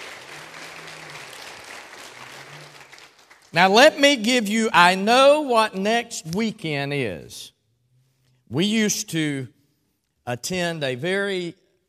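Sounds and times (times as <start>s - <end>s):
audience applause: 0.0s - 3.6s
speech: 3.5s - 7.6s, 8.5s - 9.6s, 10.3s - 11.6s.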